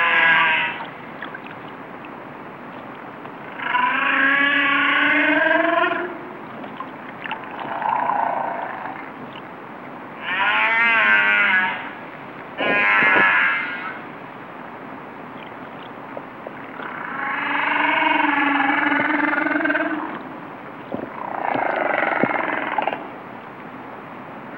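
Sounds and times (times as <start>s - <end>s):
whales singing: 0.0s - 1.8s, 2.8s - 9.5s, 10.2s - 12.0s, 12.6s - 14.1s, 15.3s - 23.2s.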